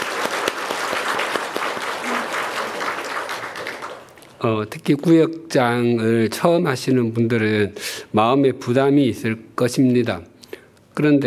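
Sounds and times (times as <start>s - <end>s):
audience applause: 0.0s - 4.3s
speech: 4.4s - 10.3s, 11.0s - 11.2s.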